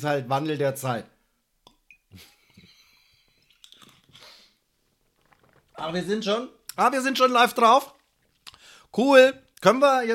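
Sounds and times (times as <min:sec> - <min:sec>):
speech: 0:00.0 - 0:01.2, 0:02.1 - 0:02.4, 0:05.8 - 0:08.0, 0:08.9 - 0:10.1
person taking a quick drink, sipping and swallowing: 0:01.6 - 0:05.8
breathing: 0:02.5 - 0:04.7, 0:08.5 - 0:08.9.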